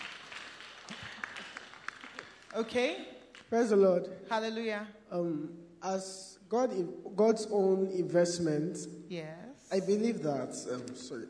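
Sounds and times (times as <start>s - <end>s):
audience clapping: 0.0s - 3.6s
speech: 2.5s - 11.2s.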